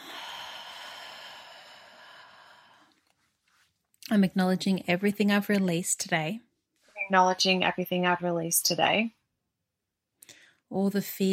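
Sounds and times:
deep grounding breath in and out during tapping exercise: 0.0 - 3.0
speech: 4.1 - 6.5, 7.1 - 9.2, 10.7 - 11.3.

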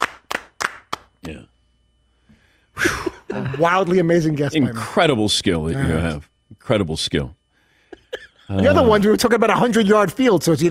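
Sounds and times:
sparse hand claps from a lone person: 0.0 - 1.4
speech: 1.3 - 1.5, 2.8 - 7.4, 8.1 - 10.6.

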